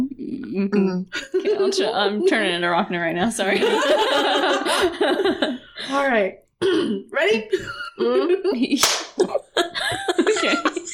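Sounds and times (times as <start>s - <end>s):
speech: 0.5s - 10.7s
laughter: 1.2s - 2.4s, 3.5s - 5.9s, 7.6s - 10.9s
loud hand clap: 8.8s - 9.2s.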